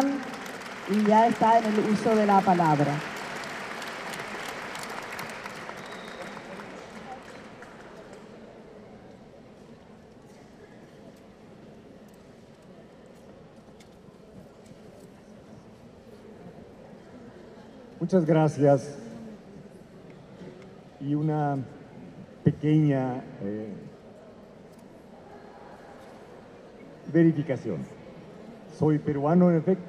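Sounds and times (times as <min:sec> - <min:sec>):
audience applause: 0:00.0 - 0:08.4
speech: 0:00.9 - 0:03.1, 0:18.1 - 0:19.0, 0:21.1 - 0:21.8, 0:22.6 - 0:23.9, 0:27.1 - 0:28.0, 0:28.8 - 0:29.8.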